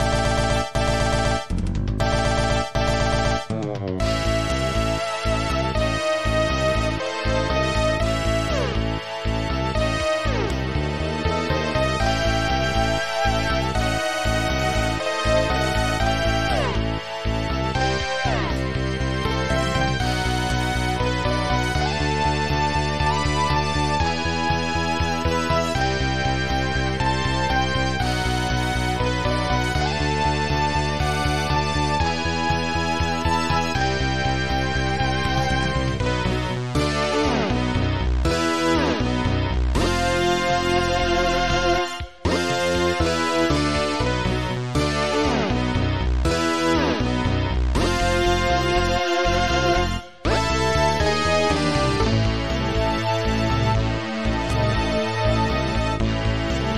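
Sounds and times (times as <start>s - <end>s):
battle background music: 0.0s - 56.7s.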